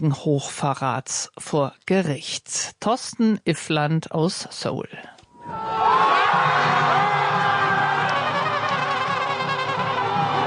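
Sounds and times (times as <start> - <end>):
speech: 0.0 - 6.9
crowd cheering in celebration: 5.4 - 10.4.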